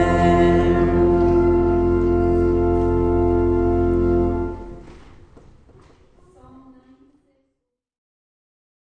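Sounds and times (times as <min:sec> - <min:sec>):
congregation singing a Christmas carol: 0:00.0 - 0:04.8.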